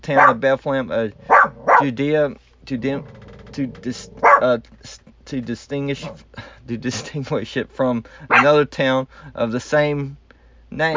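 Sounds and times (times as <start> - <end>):
pet dog barking: 0.0 - 0.4, 1.2 - 1.9, 4.1 - 4.5, 6.0 - 6.2, 8.3 - 8.6
speech: 0.1 - 10.9.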